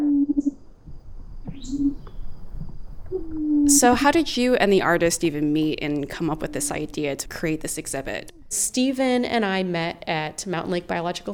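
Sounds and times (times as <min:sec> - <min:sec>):
insect vibrational song recorded in plant stem: 0:00.0 - 0:09.0
speech: 0:03.7 - 0:11.3.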